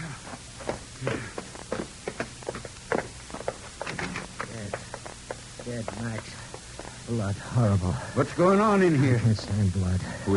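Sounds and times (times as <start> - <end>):
footsteps of people walking: 0.2 - 7.5
speech: 5.8 - 6.4, 7.1 - 10.3.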